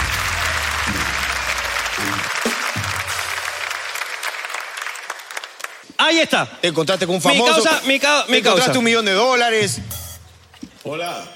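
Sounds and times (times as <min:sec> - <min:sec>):
crowd applause: 0:00.0 - 0:06.0
speech: 0:06.0 - 0:10.0, 0:10.8 - 0:11.3.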